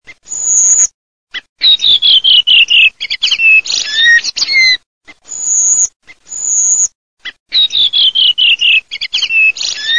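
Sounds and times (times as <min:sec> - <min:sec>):
redwing whistled calls: 0:00.3 - 0:09.9.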